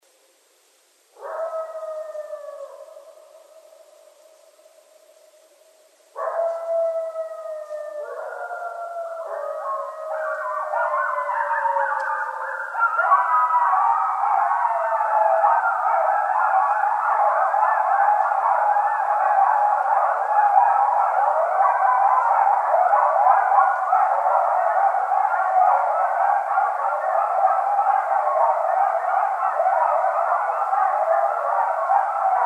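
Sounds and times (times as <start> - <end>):
coyotes howling: 1.2 - 32.4.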